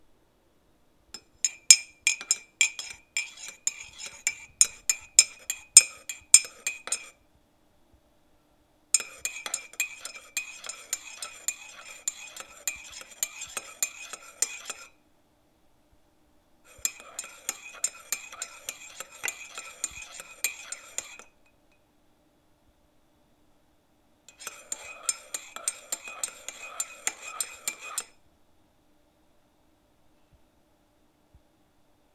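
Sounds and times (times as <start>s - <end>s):
spoon stirring cup: 1.2s - 7.2s, 9.0s - 15.0s, 16.7s - 21.4s, 24.3s - 28.2s.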